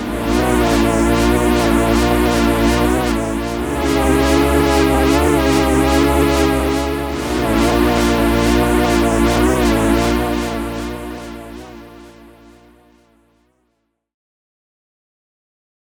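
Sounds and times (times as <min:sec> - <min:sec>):
synth strings: 0:00.0 - 0:12.6.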